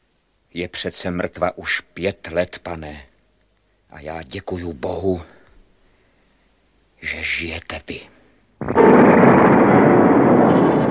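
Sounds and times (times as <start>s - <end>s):
speech: 0.5s - 3.1s, 3.9s - 5.4s, 7.0s - 9.0s
castle tower collapsing: 8.6s - 10.8s
massive explosion: 8.6s - 10.8s.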